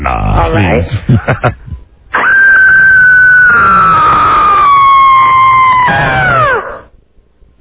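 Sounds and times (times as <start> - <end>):
speech: 0.0 - 1.7
woman screaming loudly: 2.2 - 6.8.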